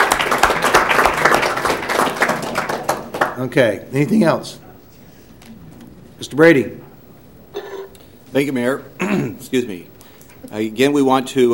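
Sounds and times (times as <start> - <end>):
group applauding: 0.0 - 6.1
speech: 3.4 - 4.6, 6.2 - 6.8, 8.3 - 11.5.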